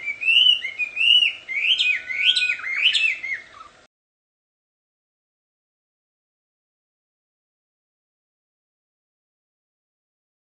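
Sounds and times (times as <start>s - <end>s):
wild Chinese hwamei singing in its natural habitat: 0.0s - 3.9s.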